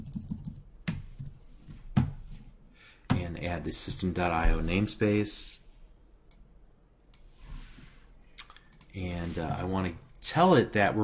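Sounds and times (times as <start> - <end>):
typing on a computer keyboard: 0.0 - 1.3
speech: 3.3 - 5.6, 9.0 - 11.0.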